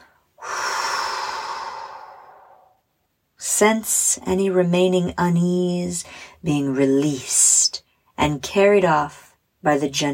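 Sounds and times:
person exhaling slowly during a guided relaxation for anxiety: 0.0s - 2.8s
speech: 3.6s - 7.4s, 8.2s - 10.1s.

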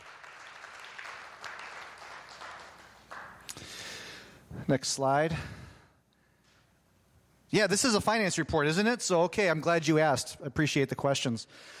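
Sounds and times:
audience applause: 0.0s - 3.6s
speech: 4.7s - 5.6s, 7.5s - 11.7s.

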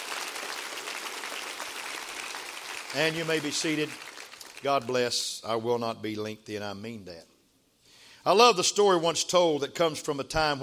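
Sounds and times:
audience clapping hands: 0.0s - 5.0s
speech: 2.9s - 7.3s, 8.2s - 10.6s.

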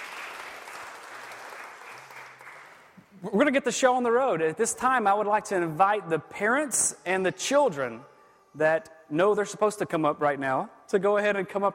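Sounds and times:
audience clapping: 0.0s - 3.0s
speech: 3.2s - 11.7s.

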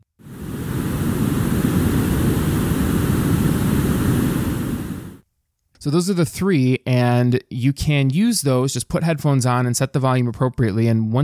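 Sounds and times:
brown noise low hum: 0.2s - 5.2s
speech: 5.8s - 11.2s.

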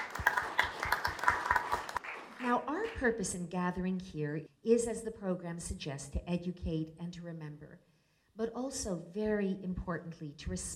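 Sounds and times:
audience applause: 0.0s - 2.9s
speech: 2.5s - 10.7s.

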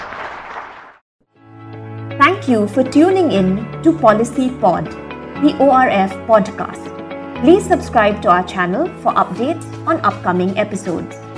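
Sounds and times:
audience applause for a panel: 0.0s - 1.0s
speech: 2.4s - 11.2s.

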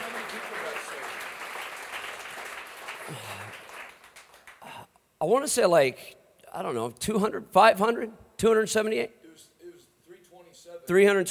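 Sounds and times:
church congregation applauding with hand claps: 0.0s - 4.8s
speech: 3.1s - 3.4s, 5.2s - 9.5s, 10.6s - 11.3s.

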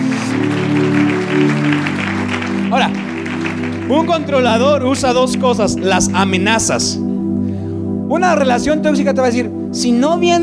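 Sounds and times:
audience applauding: 0.0s - 6.7s
sustained low musical tones: 0.0s - 10.4s
speech: 4.0s - 7.1s, 8.1s - 10.4s.

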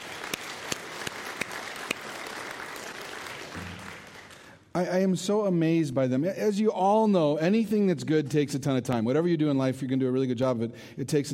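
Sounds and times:
audience applause: 0.0s - 4.6s
speech: 4.8s - 11.3s.

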